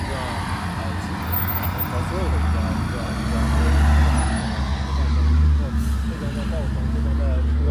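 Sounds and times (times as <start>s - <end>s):
city traffic: 0.0s - 7.6s
heavy trucks rumbling: 0.0s - 7.6s.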